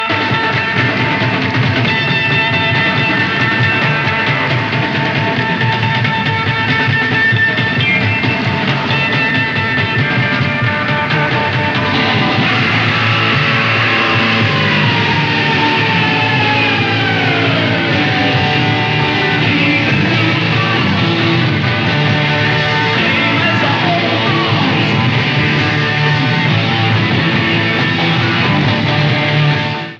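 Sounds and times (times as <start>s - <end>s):
drum solo: 0.0s - 29.9s.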